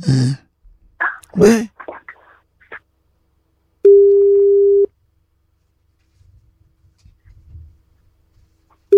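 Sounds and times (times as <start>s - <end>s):
speech: 0.0s - 0.4s, 1.4s - 1.7s
telephone ringback tone: 3.8s - 4.9s
faint rustling: 5.5s - 8.9s.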